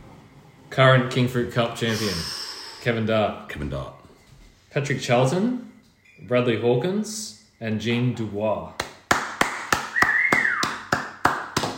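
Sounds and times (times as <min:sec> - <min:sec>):
speech: 0:00.8 - 0:04.0, 0:04.7 - 0:08.8
sparse clapping: 0:08.8 - 0:11.7.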